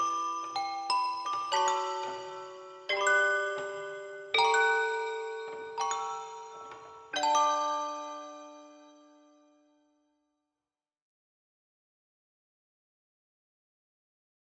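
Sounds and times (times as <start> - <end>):
toy piano: 0.0 - 8.6.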